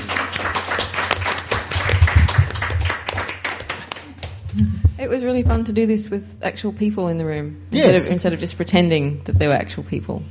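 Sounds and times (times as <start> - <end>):
live audience clapping: 0.0 - 4.6
speech: 4.6 - 10.2.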